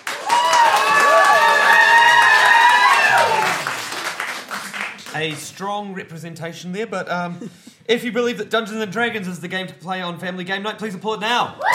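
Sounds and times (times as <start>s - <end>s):
audience applause: 0.0s - 5.5s
whoops and cheers: 0.1s - 3.7s, 11.6s - 11.7s
speech: 5.2s - 11.7s.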